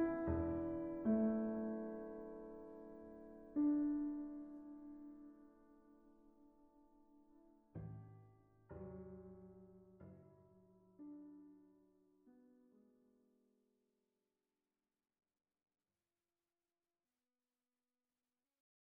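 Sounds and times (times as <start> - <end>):
piano played con forza: 0.0 - 5.2.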